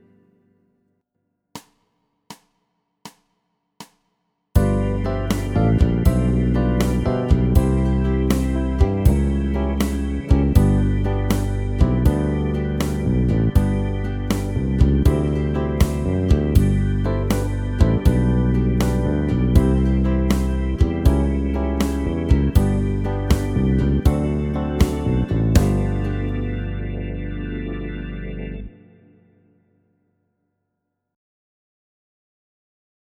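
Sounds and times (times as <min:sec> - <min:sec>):
music track with vocals and backing: 0:04.6 - 0:29.1.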